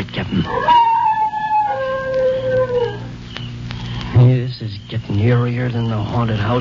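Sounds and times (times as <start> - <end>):
speech: 0.3 - 0.8, 5.2 - 6.6
dog howling: 0.4 - 3.3.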